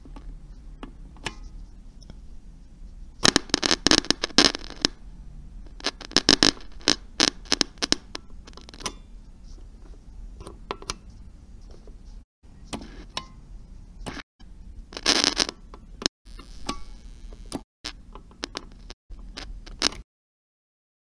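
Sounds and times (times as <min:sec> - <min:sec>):
radio ambience: 0:03.2 - 0:05.0, 0:05.7 - 0:08.8, 0:14.9 - 0:15.6, 0:16.3 - 0:20.0.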